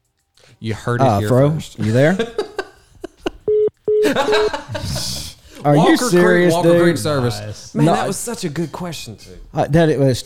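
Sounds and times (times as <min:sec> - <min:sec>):
speech: 0:00.6 - 0:02.4, 0:04.0 - 0:10.2
laughter: 0:01.8 - 0:05.4
accidental FaceTime video call ringing tone: 0:03.5 - 0:04.6.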